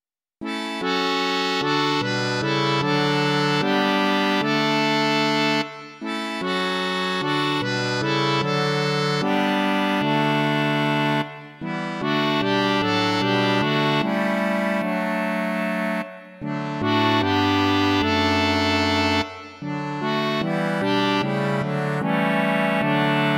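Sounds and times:
accordion: 0:00.4 - 0:23.3.

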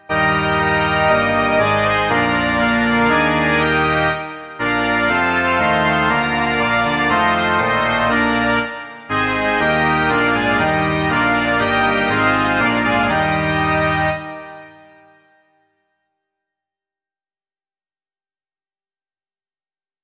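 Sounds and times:
organ: 0:00.0 - 0:15.6.

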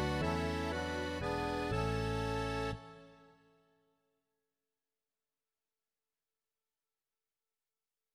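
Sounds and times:
bass guitar: 0:00.0 - 0:02.8
accordion: 0:00.0 - 0:03.6.

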